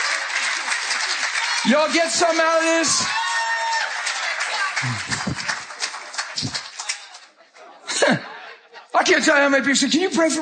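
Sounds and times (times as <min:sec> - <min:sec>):
crowd applauding: 0:00.0 - 0:07.4
speech: 0:01.6 - 0:03.2, 0:04.8 - 0:05.1, 0:09.0 - 0:10.4
laughter: 0:04.5 - 0:09.0.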